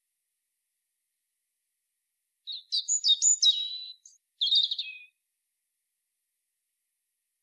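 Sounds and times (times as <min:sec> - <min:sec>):
European robin song: 0:02.5 - 0:05.2.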